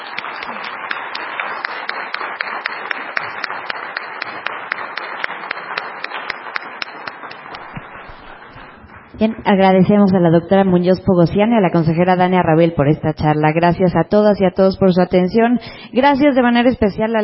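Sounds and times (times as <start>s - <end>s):
audience applause: 0.0s - 9.2s
speech: 9.2s - 17.2s.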